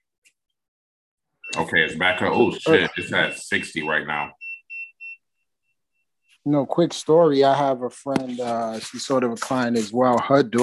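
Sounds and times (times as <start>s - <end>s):
meter beeping: 1.4s - 5.2s
speech: 1.5s - 4.4s, 6.4s - 10.6s.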